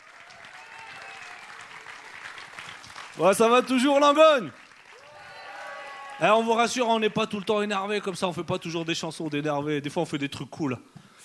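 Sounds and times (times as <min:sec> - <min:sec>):
audience applause: 0:00.0 - 0:08.2
speech: 0:03.2 - 0:04.6, 0:06.2 - 0:11.2.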